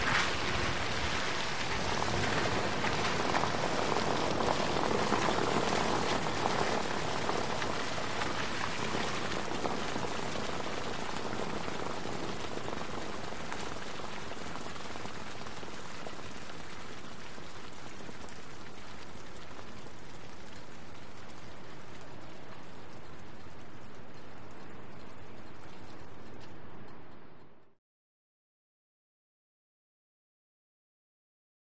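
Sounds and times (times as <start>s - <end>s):
car tires rolling through puddles in wet traffic: 0.0s - 27.8s.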